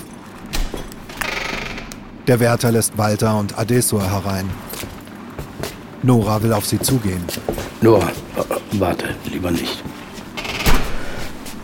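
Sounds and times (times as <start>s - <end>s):
heavy dining hall door opening: 0.4s - 2.3s, 10.3s - 11.6s
speech: 2.3s - 5.0s, 6.0s - 10.0s.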